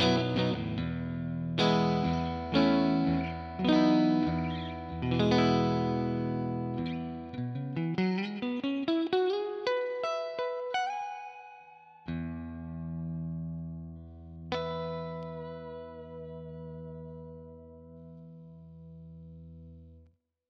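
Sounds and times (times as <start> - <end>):
clean electric guitar on HSS neck pickup: 0.0 - 20.0.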